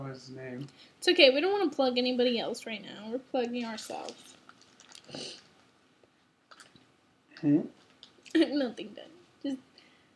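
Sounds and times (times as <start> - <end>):
speech: 0.0 - 4.4, 5.1 - 5.4, 7.4 - 9.7
wet lip smacking while chewing: 4.3 - 5.6, 6.5 - 6.9.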